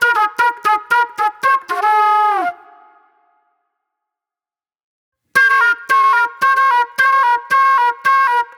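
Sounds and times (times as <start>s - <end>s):
raw funk flute: 0.0s - 2.9s, 5.4s - 8.5s.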